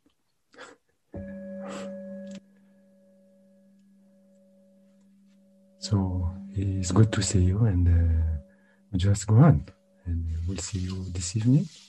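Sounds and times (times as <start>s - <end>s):
meditation bell ringing: 1.2s - 11.5s
speech: 5.8s - 11.8s.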